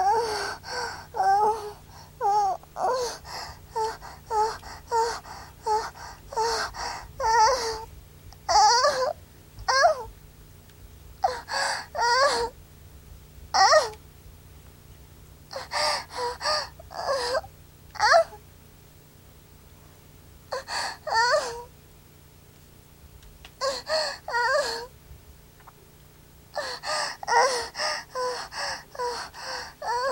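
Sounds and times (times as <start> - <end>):
young woman moaning: 0.0 - 7.9, 8.5 - 10.1, 11.2 - 12.6, 13.6 - 14.0, 15.5 - 18.4, 20.5 - 21.7, 23.6 - 24.9, 26.6 - 30.1.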